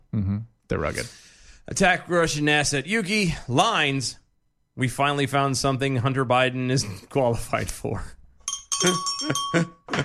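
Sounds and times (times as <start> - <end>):
speech: 0.2 - 4.2, 4.8 - 8.2, 8.8 - 10.0
bright bell ding: 8.5 - 9.9.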